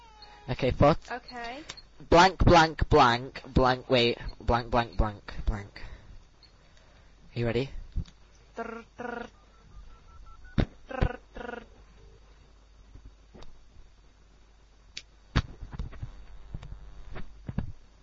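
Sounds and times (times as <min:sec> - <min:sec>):
speech: 0:00.5 - 0:05.9, 0:07.4 - 0:09.4
telephone ringing tone on a call: 0:09.0 - 0:10.6.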